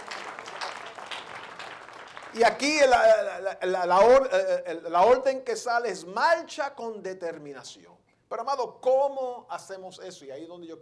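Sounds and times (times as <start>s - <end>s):
audience applause: 0.0s - 2.8s
speech: 2.3s - 10.8s.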